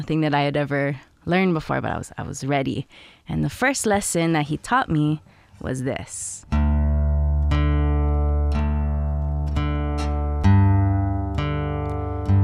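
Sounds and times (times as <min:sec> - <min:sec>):
speech: 0:00.0 - 0:06.6
slack key guitar alternating bass: 0:06.4 - 0:12.4.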